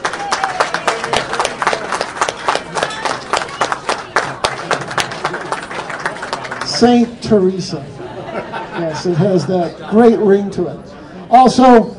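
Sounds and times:
audience applause at a speaking event: 0:00.0 - 0:07.1
speech: 0:06.8 - 0:11.9
laughter: 0:07.8 - 0:10.4.

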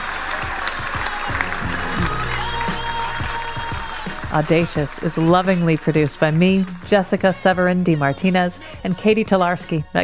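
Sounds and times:
audience applause: 0:00.0 - 0:07.2
speech: 0:04.3 - 0:10.0.

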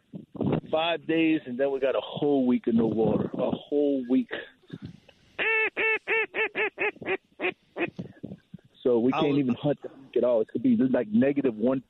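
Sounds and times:
speech: 0:00.7 - 0:04.5, 0:06.1 - 0:07.2, 0:08.9 - 0:11.8
waterfowl honking: 0:05.4 - 0:08.0.

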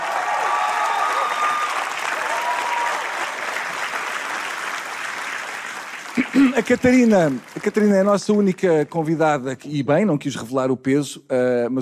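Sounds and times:
audience applause: 0:00.0 - 0:09.2
speech: 0:06.2 - 0:11.8.

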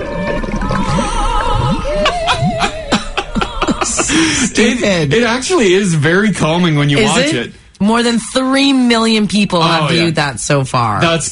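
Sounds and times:
underwater farting bubbles gurgling: 0:00.0 - 0:03.8
laughter: 0:01.1 - 0:05.4
speech: 0:04.5 - 0:11.2.

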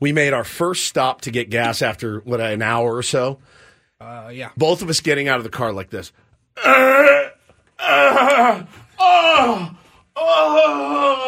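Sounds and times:
speech: 0:00.0 - 0:11.2
voice imitating groaning in pain: 0:06.6 - 0:11.2.

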